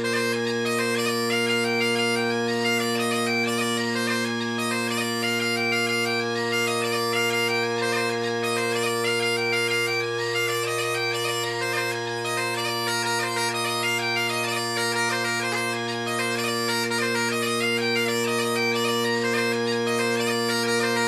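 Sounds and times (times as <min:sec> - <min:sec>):
Great Highland bagpipe with tenor reeds playing a jig: 0:00.0 - 0:21.0.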